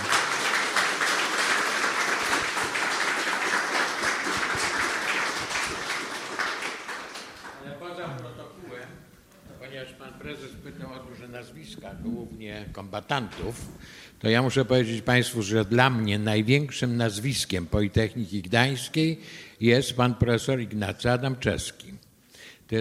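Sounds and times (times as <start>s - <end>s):
audience applause for the author: 0.0s - 7.7s
speech: 11.8s - 22.0s.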